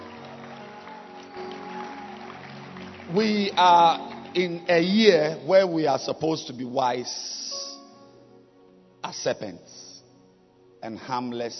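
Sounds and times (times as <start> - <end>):
audience clapping: 0.0 - 5.4
speech: 3.1 - 7.5, 9.1 - 9.8, 10.8 - 11.5.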